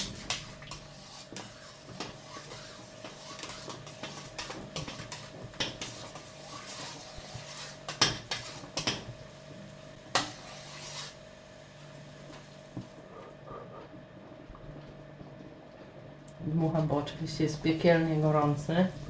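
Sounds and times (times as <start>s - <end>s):
spoon clinking and scraping against a pot stirring soup: 0.2s - 9.1s, 10.1s - 11.2s
speech: 16.5s - 19.0s.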